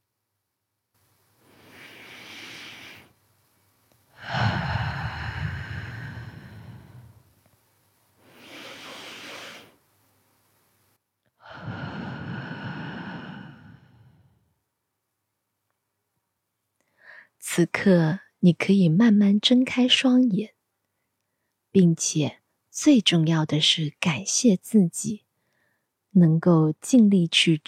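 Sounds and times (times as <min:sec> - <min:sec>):
slow deep breathing: 0:01.4 - 0:03.2, 0:04.1 - 0:07.2, 0:08.2 - 0:09.8, 0:11.4 - 0:14.4
speech: 0:17.6 - 0:20.6, 0:21.8 - 0:25.2, 0:26.1 - 0:27.6.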